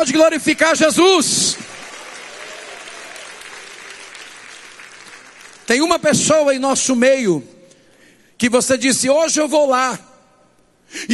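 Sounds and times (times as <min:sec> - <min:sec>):
speech: 0:00.0 - 0:01.6, 0:05.7 - 0:07.6, 0:08.4 - 0:10.1, 0:10.9 - 0:11.1
audience clapping hands: 0:00.0 - 0:06.2.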